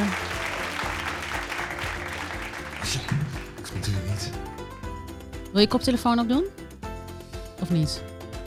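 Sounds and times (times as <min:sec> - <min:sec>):
small group applauding for arriving guest: 0:00.0 - 0:04.6
speech: 0:05.6 - 0:06.6, 0:07.7 - 0:08.1.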